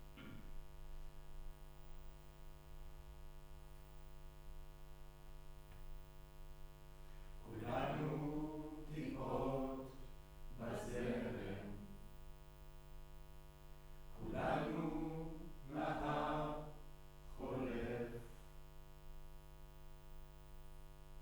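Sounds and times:
choir singing in room: 7.4 - 12.0, 14.2 - 18.3.

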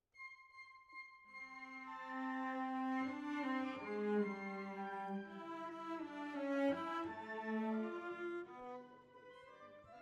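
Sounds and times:
cellos playing: 1.9 - 9.2.

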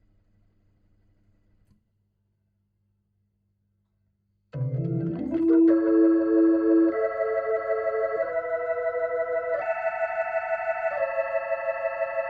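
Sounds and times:
Hammond organ through a Leslie speaker: 4.6 - 12.2.

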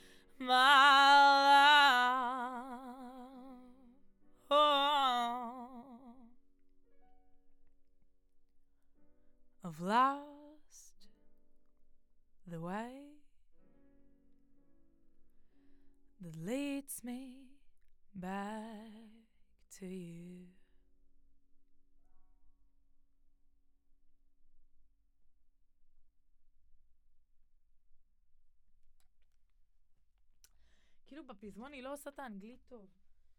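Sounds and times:
vocals: 0.0 - 6.3, 9.6 - 11.0, 12.5 - 13.2, 16.2 - 17.6, 18.2 - 20.6, 31.1 - 32.9.

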